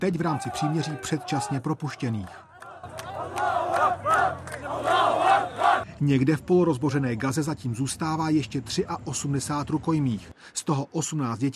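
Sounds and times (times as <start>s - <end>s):
speech: 0.0s - 2.5s, 6.0s - 11.5s
crowd cheering and chanting to welcome released prisoners: 0.1s - 5.8s.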